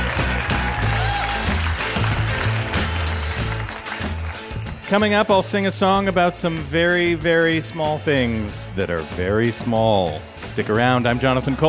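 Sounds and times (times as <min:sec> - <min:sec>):
audience applause: 0:00.0 - 0:05.1
speech: 0:04.9 - 0:11.6.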